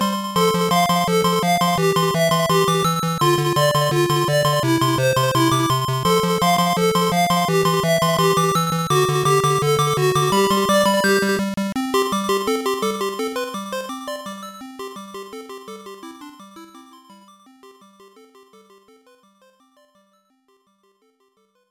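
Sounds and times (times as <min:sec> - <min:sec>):
minigame background music: 0:00.0 - 0:16.8.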